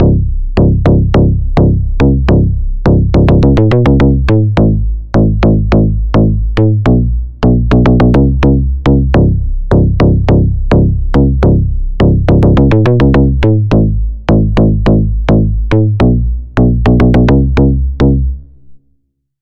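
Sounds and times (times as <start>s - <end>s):
bass: 0.0s - 19.4s.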